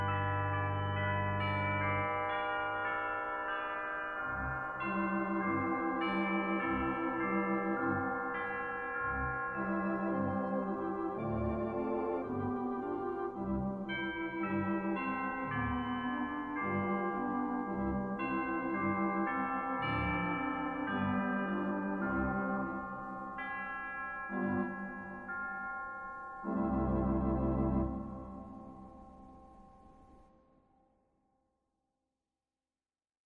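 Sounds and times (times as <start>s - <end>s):
vibraphone sleigh chimes: 0.0s - 30.8s.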